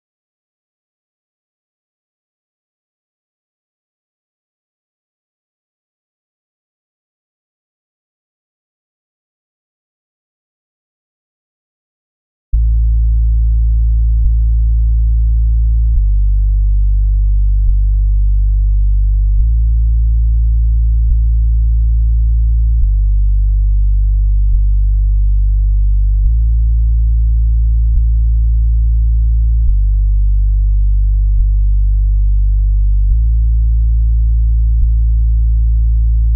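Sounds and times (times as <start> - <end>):
bass: 12.5 - 36.3.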